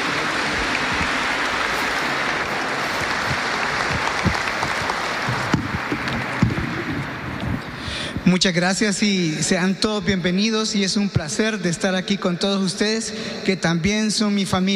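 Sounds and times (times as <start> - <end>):
audience applause: 0.0 - 7.6
speech: 8.3 - 14.7.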